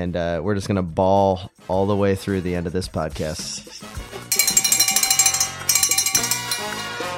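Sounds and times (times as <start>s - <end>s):
speech: 0.0s - 4.1s
bell ringing: 4.3s - 7.0s.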